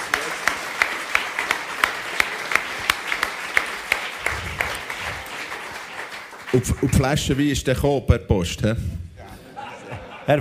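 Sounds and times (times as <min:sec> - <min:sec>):
crowd applause: 0:00.0 - 0:07.5
speech: 0:06.5 - 0:09.0
laughter: 0:09.2 - 0:10.3.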